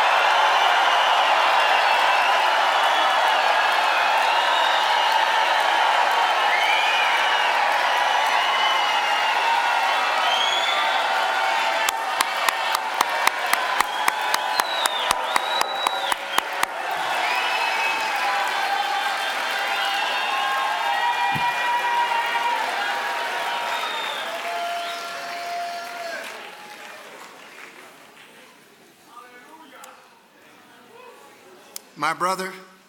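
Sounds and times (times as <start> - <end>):
audience clapping: 0.0 - 28.8
speech: 32.1 - 32.6.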